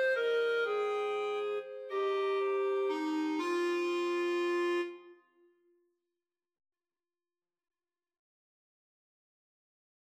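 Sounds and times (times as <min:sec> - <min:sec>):
soprano singing slowly: 0:00.0 - 0:05.0.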